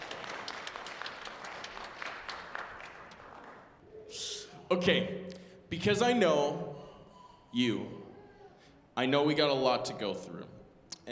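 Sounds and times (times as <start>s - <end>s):
audience applause: 0.0s - 3.8s
speech: 4.7s - 6.8s, 7.5s - 8.0s, 9.0s - 11.1s.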